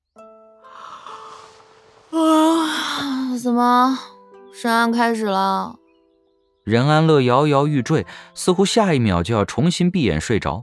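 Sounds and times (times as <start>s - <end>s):
person yawning: 0.8s - 3.1s
speech: 3.4s - 5.8s, 6.6s - 10.6s.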